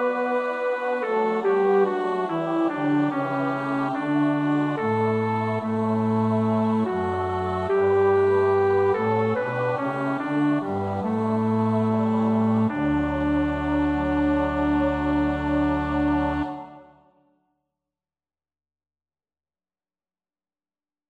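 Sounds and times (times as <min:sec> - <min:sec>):
bass choir part practice: 0:00.0 - 0:16.9.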